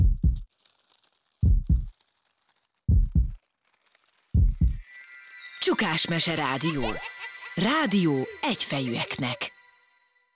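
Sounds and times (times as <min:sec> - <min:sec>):
loud deep heartbeat: 0:00.0 - 0:00.4, 0:01.4 - 0:01.9, 0:02.9 - 0:03.4, 0:04.4 - 0:04.8
speech: 0:05.7 - 0:09.5.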